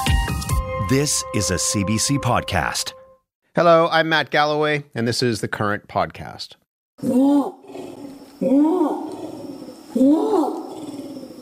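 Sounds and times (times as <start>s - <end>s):
speech: 0.9s - 3.0s, 3.6s - 8.9s
Sumatran orangutan roaring calls from rainforest canopy in Gunung Leuser National Park: 7.0s - 11.4s.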